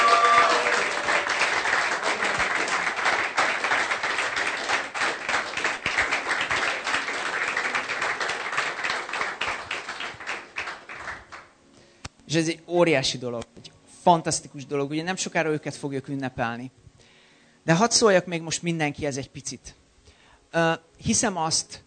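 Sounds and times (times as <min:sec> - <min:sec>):
audience applause: 0:00.0 - 0:11.5
speech: 0:12.3 - 0:13.4, 0:14.1 - 0:16.8, 0:17.6 - 0:19.8, 0:20.5 - 0:21.8.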